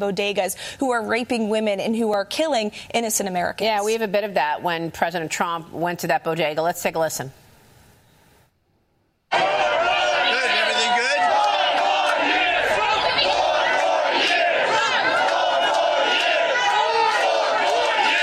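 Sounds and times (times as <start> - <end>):
speech: 0.0 - 7.4
crowd chanting outside a bodega: 9.3 - 18.2.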